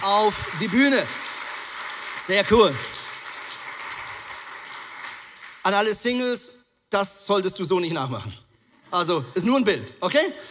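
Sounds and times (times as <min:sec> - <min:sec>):
audience applause: 0:00.0 - 0:05.9
speech: 0:00.1 - 0:01.2, 0:02.2 - 0:03.0, 0:05.6 - 0:10.4.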